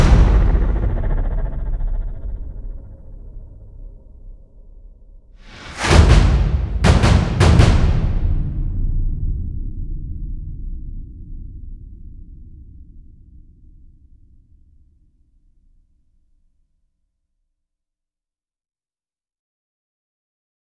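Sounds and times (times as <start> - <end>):
drums: 0.0 - 2.9, 5.4 - 11.8.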